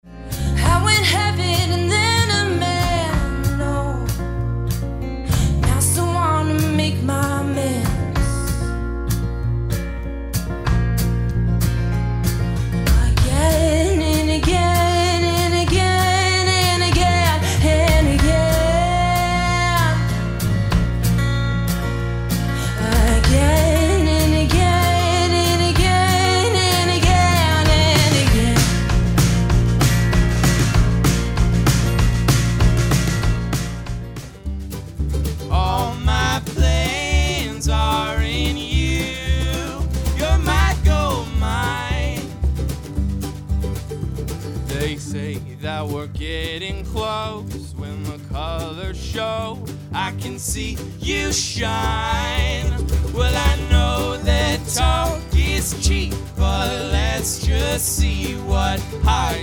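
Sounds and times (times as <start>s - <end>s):
bright acoustic sound: 0.1s - 59.4s.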